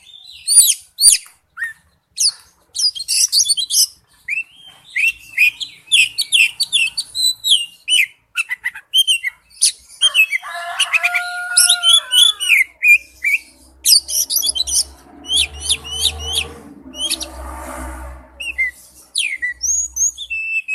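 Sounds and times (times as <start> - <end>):
Oriental magpie-robin singing whistles and chattering notes: 0.0 - 10.4, 11.5 - 17.4, 18.4 - 20.7.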